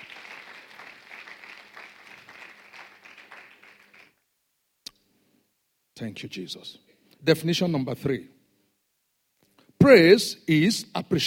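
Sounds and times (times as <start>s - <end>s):
audience clapping: 0.0s - 4.2s
speech: 6.0s - 8.4s, 9.9s - 11.2s.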